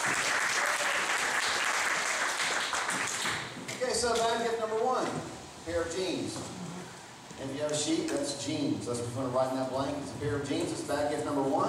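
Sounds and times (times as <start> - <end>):
audience applause: 0.0 - 3.6
speech: 4.0 - 6.6, 7.4 - 11.6.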